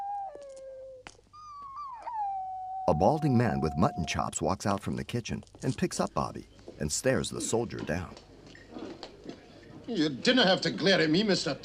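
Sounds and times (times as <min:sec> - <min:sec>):
dog howling in a restaurant: 0:00.0 - 0:04.3
speech: 0:02.9 - 0:08.3, 0:09.9 - 0:11.6.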